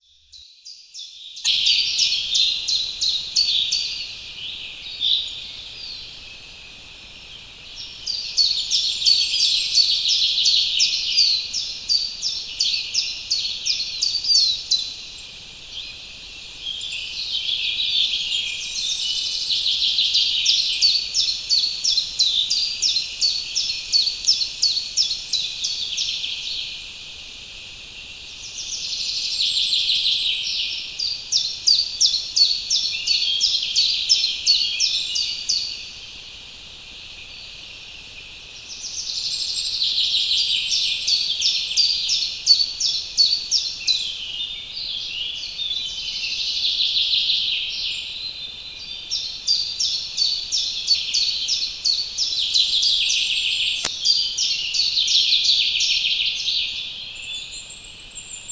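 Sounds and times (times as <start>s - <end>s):
spring forest ambience in early morning: 1.4s - 58.4s.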